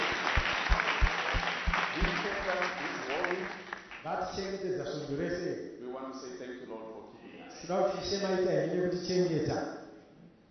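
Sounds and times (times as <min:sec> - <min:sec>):
audience clapping: 0:00.0 - 0:04.6
speech: 0:04.1 - 0:09.8.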